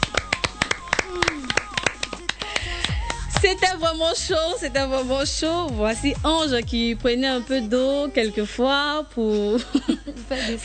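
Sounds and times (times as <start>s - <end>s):
audience applauding themselves: 0.0s - 2.6s
speech: 3.5s - 10.6s.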